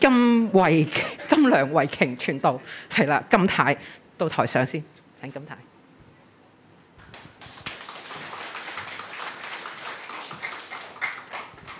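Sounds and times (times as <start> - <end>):
speech: 0.0 - 5.7
audience applause: 7.1 - 11.7.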